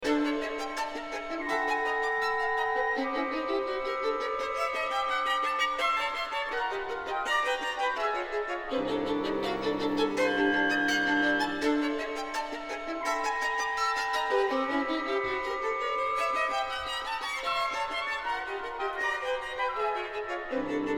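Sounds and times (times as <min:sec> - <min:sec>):
violin concerto: 0:00.0 - 0:20.9.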